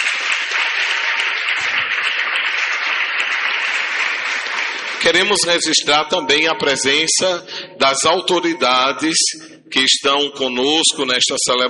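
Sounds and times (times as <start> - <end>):
audience applauding: 0.0 - 5.7
speech: 5.0 - 11.6.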